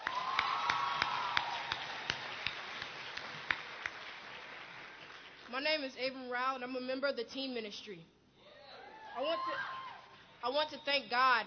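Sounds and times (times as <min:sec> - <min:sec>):
audience applauding: 0:00.0 - 0:05.5
speech: 0:05.5 - 0:08.2, 0:09.2 - 0:09.8, 0:10.4 - 0:11.4.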